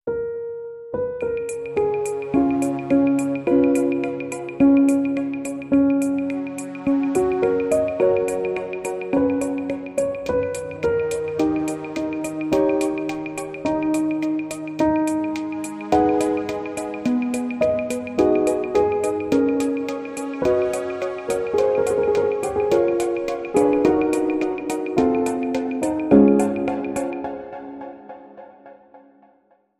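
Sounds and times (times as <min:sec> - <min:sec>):
chillstep remix music: 0:01.4 - 0:28.8.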